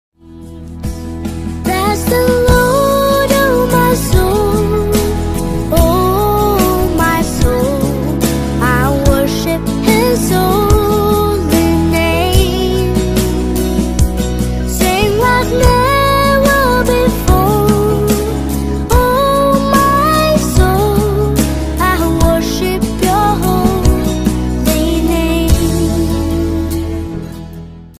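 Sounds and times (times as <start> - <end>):
English Christian song: 0.9 - 27.3.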